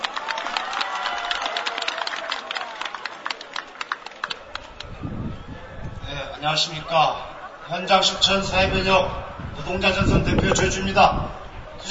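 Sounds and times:
audience applause: 0.0 - 5.1
speech: 6.4 - 11.9.

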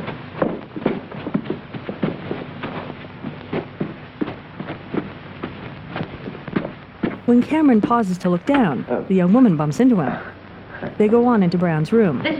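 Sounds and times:
footsteps climbing stairs: 0.0 - 8.8
faint low hum: 0.0 - 12.3
speech: 7.3 - 10.3, 10.9 - 12.3.

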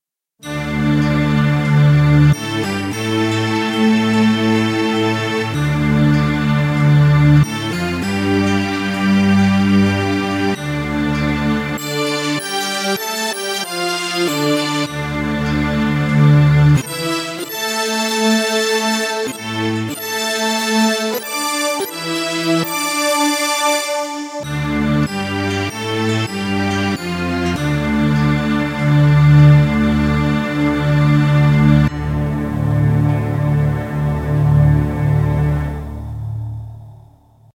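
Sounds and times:
1 note stack Kawai K1 synth preset: 0.5 - 37.5.

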